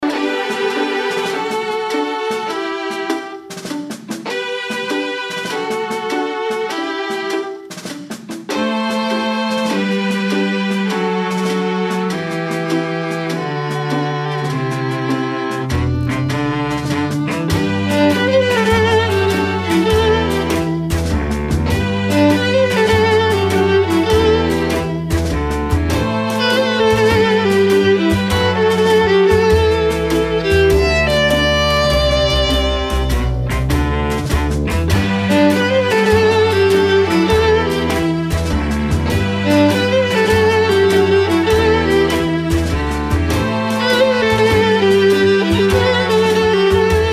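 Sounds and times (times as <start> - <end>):
strings: 0.0 - 47.1.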